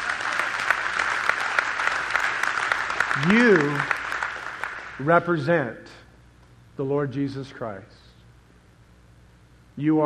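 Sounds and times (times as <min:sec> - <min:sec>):
audience clapping: 0:00.0 - 0:05.4
speech: 0:03.2 - 0:04.0, 0:05.0 - 0:06.0, 0:06.8 - 0:08.0, 0:09.8 - 0:10.0.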